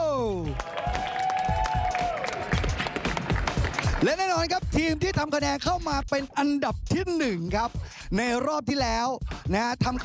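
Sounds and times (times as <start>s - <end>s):
audience applause: 0.5s - 4.1s
speech: 4.0s - 10.0s.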